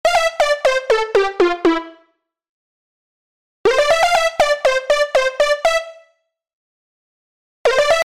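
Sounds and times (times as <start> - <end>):
lead melody: 0.0 - 2.1, 3.7 - 6.1.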